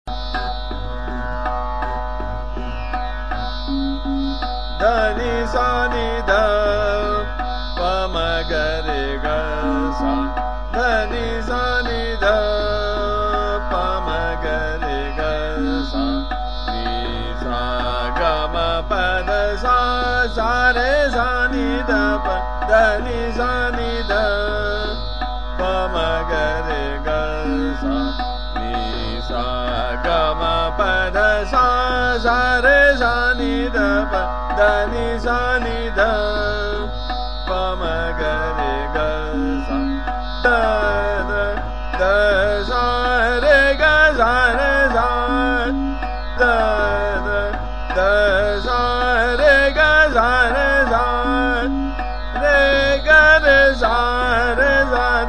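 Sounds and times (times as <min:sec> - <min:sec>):
Indian sargam singing in trital rhythm: 0:00.0 - 0:55.2.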